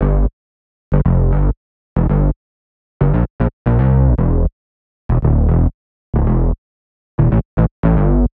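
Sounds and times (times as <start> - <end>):
bass in G: 0.0 - 0.3, 0.9 - 2.4, 3.0 - 4.5, 5.1 - 6.6, 7.2 - 8.3.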